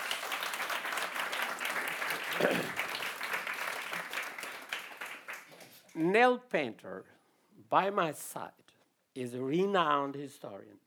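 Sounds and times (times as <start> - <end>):
audience applause: 0.0 - 5.8
speech: 2.4 - 2.8, 6.0 - 8.6, 9.2 - 10.8.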